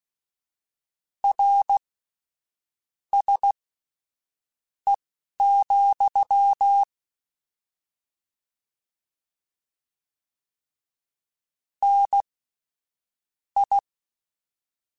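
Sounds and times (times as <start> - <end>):
Morse code beeps: 1.3 - 1.8, 3.1 - 3.5, 5.4 - 6.9, 11.8 - 12.2, 13.6 - 13.8.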